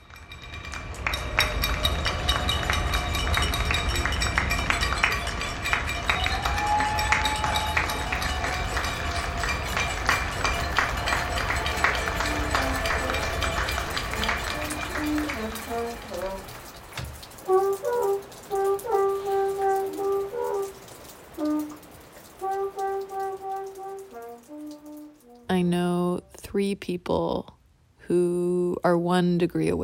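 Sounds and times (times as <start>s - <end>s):
crowd clapping for healthcare workers: 0.0s - 25.4s
speech: 26.9s - 29.8s.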